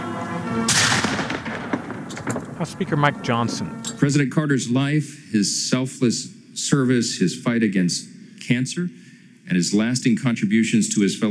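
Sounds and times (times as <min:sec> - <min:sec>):
cannon boom from a gun salute for Jimmy Carter's casket procession: 0:00.6 - 0:03.2
speech: 0:02.6 - 0:11.2.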